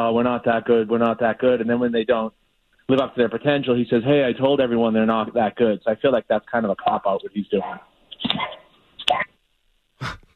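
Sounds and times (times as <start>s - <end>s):
speech: 0.0s - 9.3s, 10.0s - 10.2s
dog wanting to be let outside barking and yipping: 7.6s - 8.7s.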